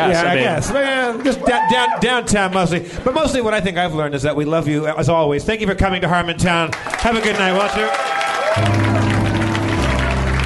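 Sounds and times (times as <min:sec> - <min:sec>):
speech: 0:00.0 - 0:09.0
audience clapping: 0:00.3 - 0:02.1, 0:06.6 - 0:10.4.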